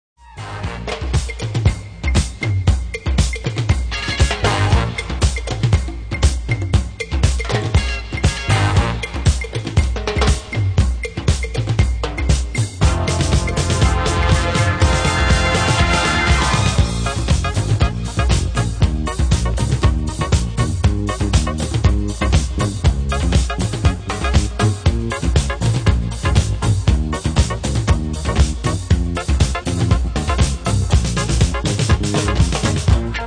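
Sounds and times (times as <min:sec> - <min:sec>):
drum: 0:00.2 - 0:33.2.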